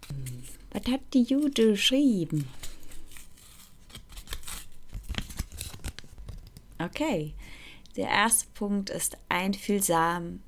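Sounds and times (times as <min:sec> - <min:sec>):
speech: 0:00.8 - 0:02.6, 0:07.0 - 0:10.4
paper note rustling and crinkling: 0:01.3 - 0:06.6.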